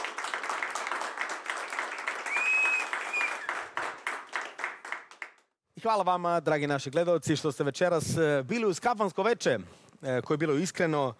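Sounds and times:
audience applause for the band at a kafana music evening: 0.0 - 5.6
whistle: 2.2 - 3.6
speech: 5.8 - 11.1.

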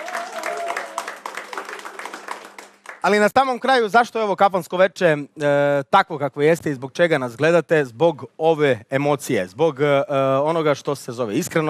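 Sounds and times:
audience applause at a live tavern-style music evening: 0.0 - 3.2
speech: 3.0 - 11.6.

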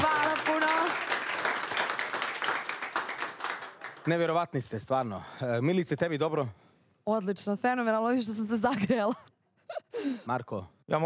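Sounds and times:
studio audience applause at an evening entertainment show: 0.0 - 4.6
speech: 4.0 - 9.3, 10.0 - 11.0.

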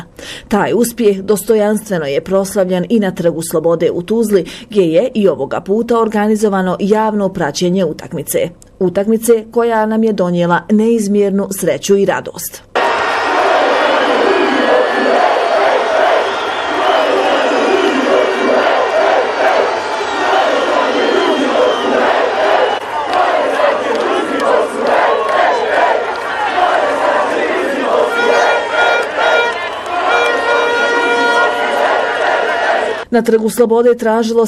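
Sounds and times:
speech: 0.5 - 12.7, 33.1 - 34.4
football fans singing and cheering at a public viewing on Freedom Square in Tuzla: 12.8 - 33.0.

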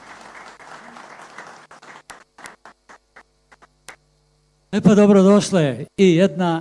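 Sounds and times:
studio audience applause welcoming guests on a live show: 0.0 - 3.3
speech: 4.7 - 6.5.

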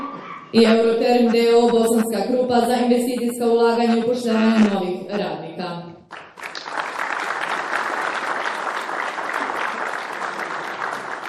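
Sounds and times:
speech: 0.5 - 5.9
applause at a Bosanska Krupa award ceremony: 6.1 - 11.2.

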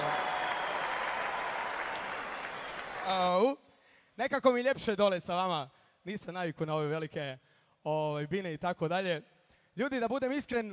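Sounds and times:
tavern audience applause for a live band: 0.0 - 3.1
speech: 3.1 - 3.6, 4.2 - 10.7.

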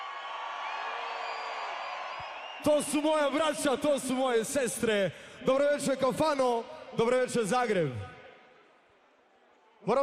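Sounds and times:
crowd screaming and cheering at a concert in a Zagreb kafana: 0.0 - 4.0
speech: 2.6 - 8.1, 9.8 - 10.0.

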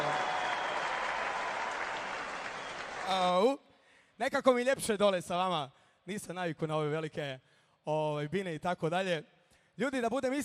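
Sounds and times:
audience applause for an orchestra at a kafana evening: 0.0 - 3.2
speech: 3.1 - 3.6, 4.2 - 10.4.

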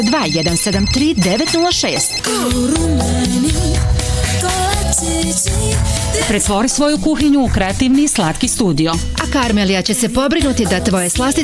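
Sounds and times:
speech: 0.0 - 4.0, 5.0 - 11.4
telephone ringing with a melodic electronic ringtone: 0.0 - 5.5.

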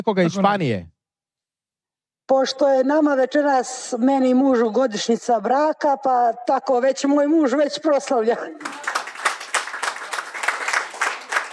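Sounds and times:
speech: 0.0 - 0.9, 2.3 - 8.9
audience clapping during a live music performance: 8.6 - 11.5.

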